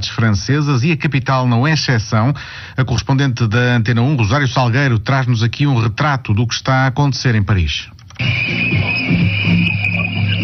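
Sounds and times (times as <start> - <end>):
speech: 0.1 - 9.4
hundreds of police officers blowing whistles: 8.2 - 10.4.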